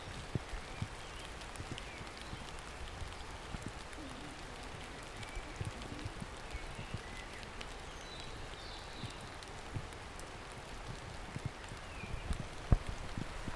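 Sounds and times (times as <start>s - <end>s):
birds ambience: 0.0s - 13.5s.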